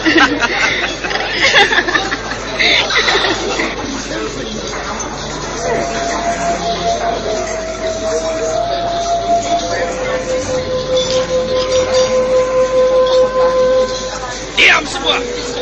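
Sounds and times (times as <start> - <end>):
laughter: 0.0 - 4.8, 14.2 - 15.6
bamboo flute playing: 5.4 - 15.6.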